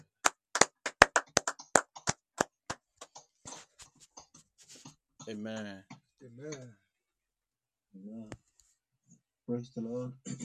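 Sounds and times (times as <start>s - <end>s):
clapping hands: 0.0s - 3.2s
speech: 5.3s - 6.8s, 8.0s - 8.4s, 9.5s - 10.4s.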